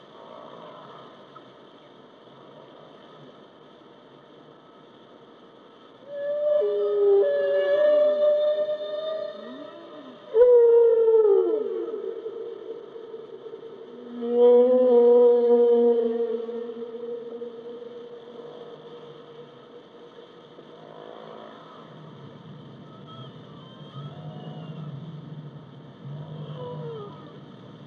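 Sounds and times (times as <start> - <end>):
whale calls: 6.0 - 27.8.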